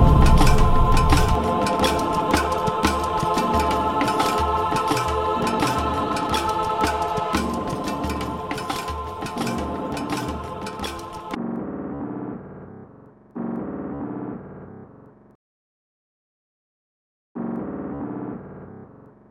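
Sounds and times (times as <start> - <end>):
music: 0.0 - 11.4.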